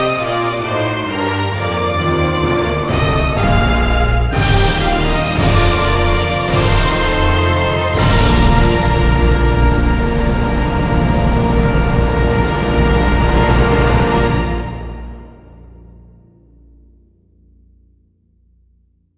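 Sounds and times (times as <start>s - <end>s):
national anthem: 0.0s - 15.0s.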